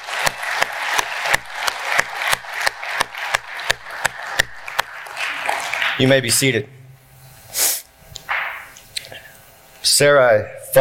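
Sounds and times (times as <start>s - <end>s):
round of applause: 0.0s - 6.1s
speech: 6.0s - 6.8s, 10.0s - 10.7s.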